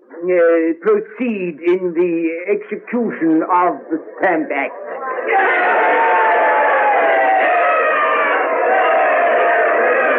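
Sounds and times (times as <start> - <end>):
speech: 0.2 - 6.1
large crowd cheering wildly with shouts and whoops: 4.7 - 10.1.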